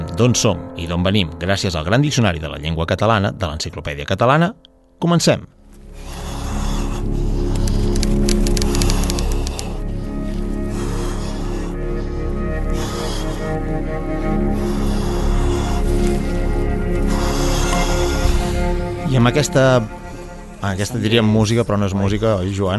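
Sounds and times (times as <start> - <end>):
speech: 0.2 - 5.6, 19.2 - 20.0, 20.6 - 22.7
heavy agonized breathing: 5.8 - 21.3.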